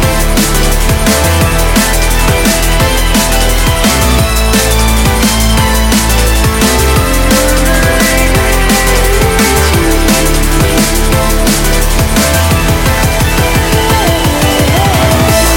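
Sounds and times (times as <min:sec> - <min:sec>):
dubstep style drum and bass music: 0:00.0 - 0:15.5.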